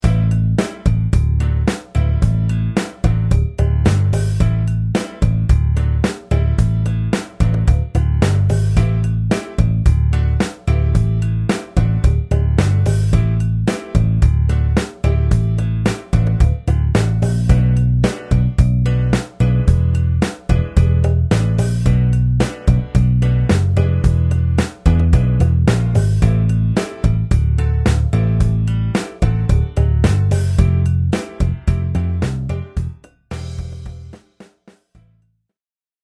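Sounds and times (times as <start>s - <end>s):
Latin rock rhythm: 0.0s - 34.9s.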